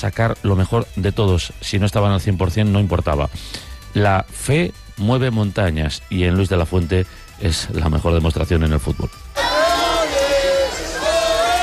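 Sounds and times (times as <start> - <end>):
speech: 0.0 - 9.5
crowd cheering and shouting after a World Cup win: 9.3 - 11.6.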